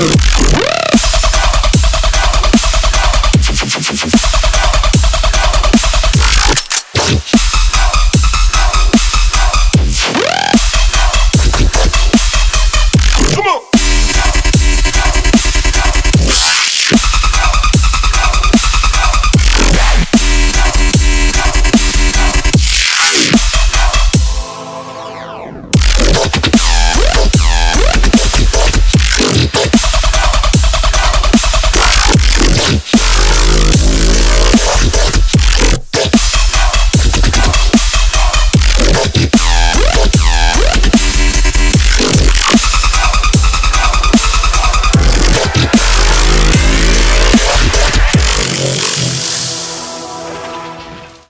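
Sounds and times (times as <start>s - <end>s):
wub wub bass drop: 0.0s - 24.4s, 25.1s - 49.5s.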